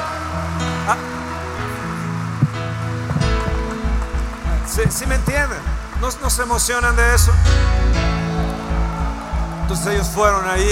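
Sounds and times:
crowd applauding loudly: 0:00.0 - 0:10.7
speech: 0:00.9 - 0:01.2, 0:04.7 - 0:08.0, 0:09.7 - 0:10.7
sustained keyboard chords: 0:02.3 - 0:10.7.

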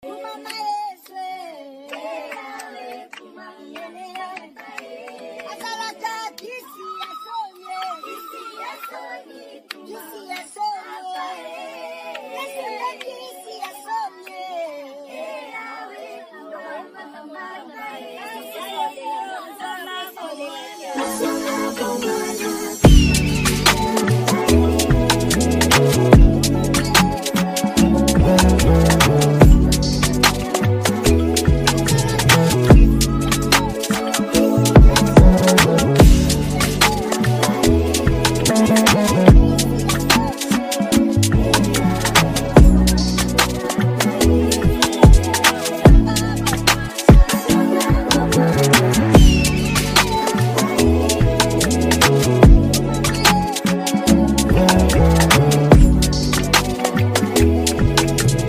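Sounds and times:
drill music remix: 0:21.0 - 0:58.4.

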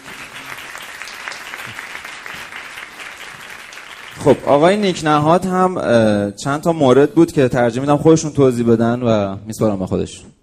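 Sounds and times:
audience at a group meeting clapping in honour of club members: 0:00.0 - 0:05.2
speech: 0:04.2 - 0:10.4.

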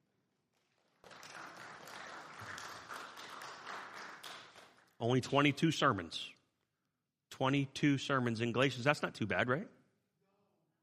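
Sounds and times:
audience applauding: 0:00.6 - 0:05.0
speech: 0:05.0 - 0:06.4, 0:07.4 - 0:09.8.

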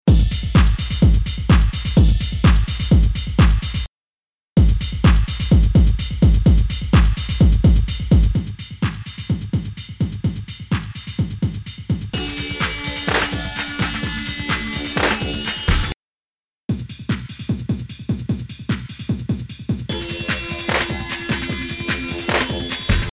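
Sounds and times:
music beat: 0:00.1 - 0:03.9, 0:04.6 - 0:16.0, 0:19.9 - 0:23.1.

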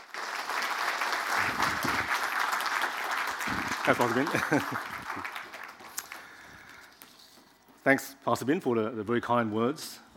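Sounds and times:
audience round of applause: 0:00.0 - 0:07.0
laughter: 0:03.4 - 0:05.5
speech: 0:03.9 - 0:05.3, 0:07.9 - 0:10.1.

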